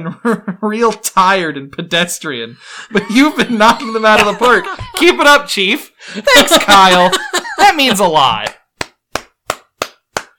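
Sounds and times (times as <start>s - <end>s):
speech: 0.0s - 8.6s
laughter: 2.9s - 8.4s
hand clapping: 4.2s - 5.2s, 7.9s - 10.3s.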